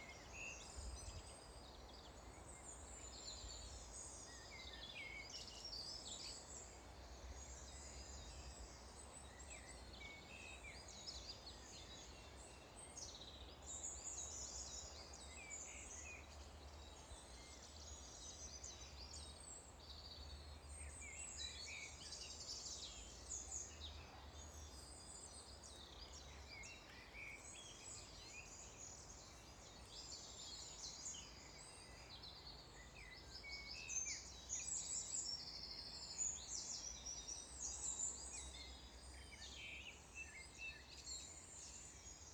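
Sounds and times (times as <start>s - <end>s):
birdsong: 0.0s - 42.3s.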